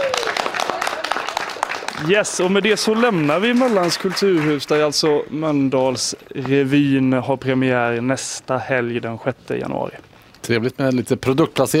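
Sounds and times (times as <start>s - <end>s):
applause: 0.0s - 5.2s
speech: 2.0s - 11.7s.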